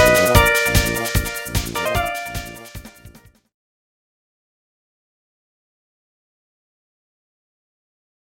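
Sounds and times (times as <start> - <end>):
remix music: 0.0 - 3.2.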